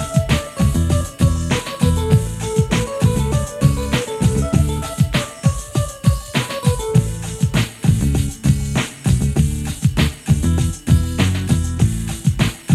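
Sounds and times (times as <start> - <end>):
guitar beats: 0.0 - 12.7.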